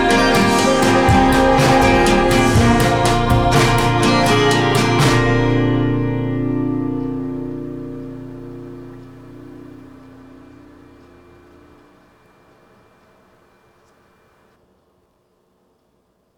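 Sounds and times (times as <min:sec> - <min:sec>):
sad song: 0:00.0 - 0:11.6.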